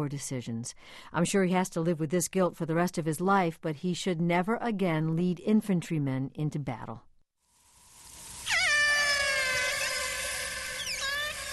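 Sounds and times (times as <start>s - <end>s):
speech: 0.0s - 7.1s
AT-1 pod of killer whales calling in Prince William Sound Alaska: 8.4s - 11.5s.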